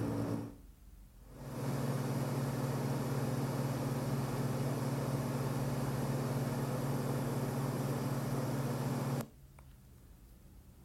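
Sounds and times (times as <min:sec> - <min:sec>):
Lectrofan Micro 2 fan sounds at max volume: 0:00.0 - 0:09.3.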